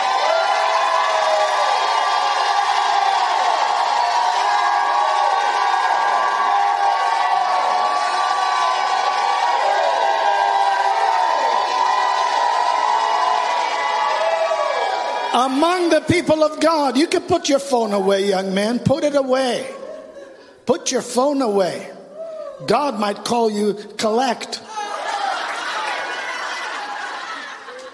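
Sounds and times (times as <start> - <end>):
audience shouting and cheering: 0.0 - 17.0, 24.6 - 27.9
speech: 15.4 - 19.8, 20.7 - 22.0, 22.6 - 24.7
laughter: 19.6 - 20.6, 24.8 - 27.9.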